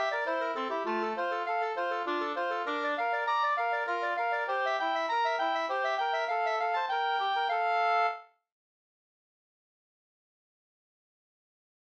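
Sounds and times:
slängpolska folk dance tune: 0.0 - 8.2.

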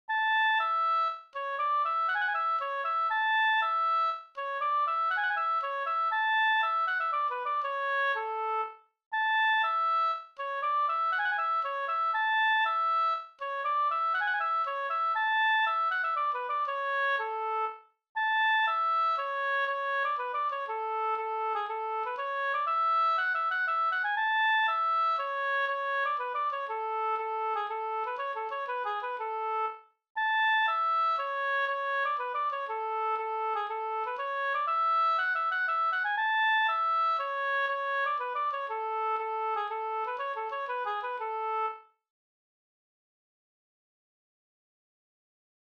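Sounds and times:
Swedish polska folk tune from Kålland Västergötland: 0.1 - 41.9.

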